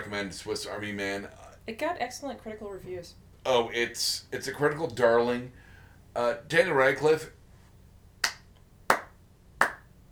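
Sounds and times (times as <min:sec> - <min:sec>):
speech: 0:00.1 - 0:07.4
slow clapping: 0:08.2 - 0:09.9.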